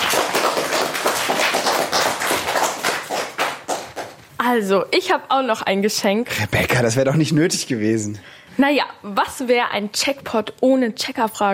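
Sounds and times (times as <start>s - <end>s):
applause: 0.0s - 4.3s
speech: 4.4s - 11.5s.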